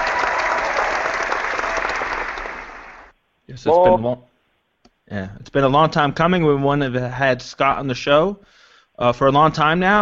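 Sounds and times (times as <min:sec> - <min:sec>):
audience applause: 0:00.0 - 0:03.1
speech: 0:03.5 - 0:04.3, 0:05.1 - 0:09.9.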